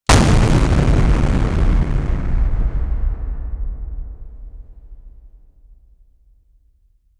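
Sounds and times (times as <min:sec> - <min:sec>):
giant monster hitting: 0:00.1 - 0:03.9.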